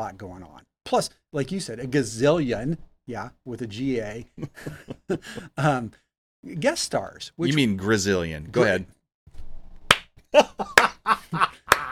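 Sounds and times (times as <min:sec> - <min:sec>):
speech: 0:00.0 - 0:09.0, 0:10.3 - 0:11.6
laughter: 0:04.3 - 0:05.6, 0:10.3 - 0:11.9
slow hand claps: 0:09.9 - 0:11.0, 0:11.6 - 0:11.9.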